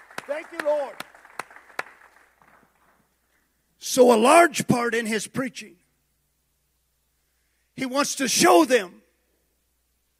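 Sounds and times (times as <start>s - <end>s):
hand claps in a large room: 0.0s - 3.0s
speech: 0.3s - 1.1s, 3.8s - 5.8s, 7.8s - 9.0s.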